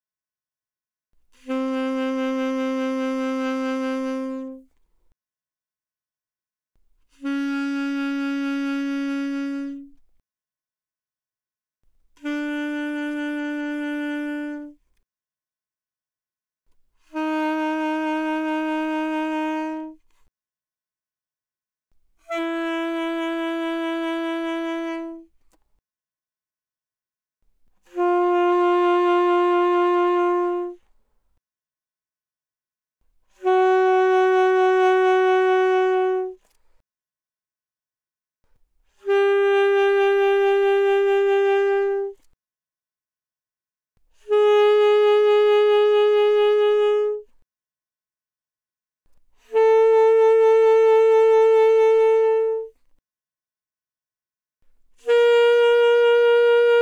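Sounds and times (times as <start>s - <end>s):
alto saxophone with vibrato: 1.4s - 4.7s, 7.1s - 10.0s, 12.2s - 14.8s, 17.1s - 20.1s, 22.2s - 25.4s, 27.8s - 30.9s, 33.3s - 36.4s, 39.0s - 42.3s, 44.2s - 47.4s, 49.4s - 52.9s, 55.0s - 56.7s.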